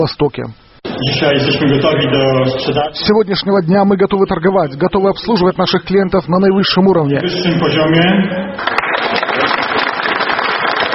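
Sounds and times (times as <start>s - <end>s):
speech: 0.0s - 8.8s
applause at supermarket opening: 8.6s - 10.9s.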